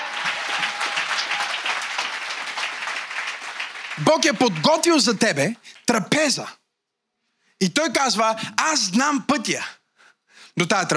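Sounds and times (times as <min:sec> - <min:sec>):
audience applause: 0:00.0 - 0:06.0
speech: 0:04.0 - 0:06.6, 0:07.6 - 0:09.8, 0:10.6 - 0:10.9.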